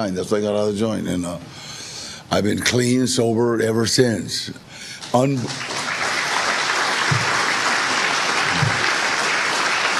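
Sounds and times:
speech: 0.0 - 1.7, 2.3 - 5.8
audience applause: 5.0 - 9.9.

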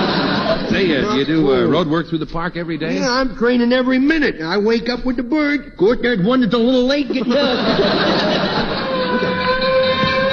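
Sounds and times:
laughter: 0.0 - 1.8, 6.9 - 10.3
speech: 0.7 - 9.3
fire truck with bells passing by: 8.7 - 10.3.

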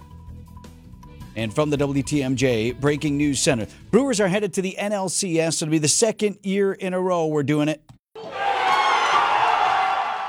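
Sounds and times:
speech: 1.4 - 7.9
baseball fans cheering for the Milwaukee Brewers in a playoff game: 8.2 - 10.2.

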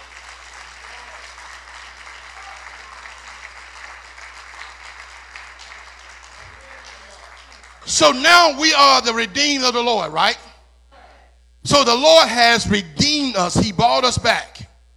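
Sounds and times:
audience clapping hands: 0.0 - 8.2
speech: 7.9 - 10.4, 11.6 - 14.5.

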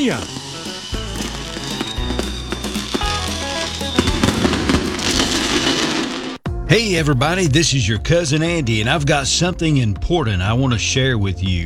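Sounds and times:
speech: 0.0 - 0.4, 6.7 - 11.6
fireworks exploding: 0.0 - 6.4.

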